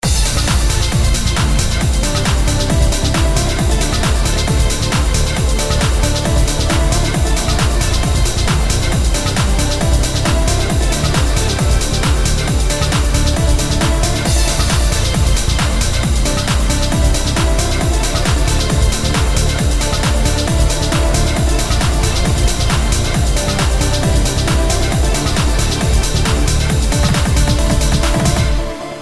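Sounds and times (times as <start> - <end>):
upbeat electronica: 0.0 - 29.0.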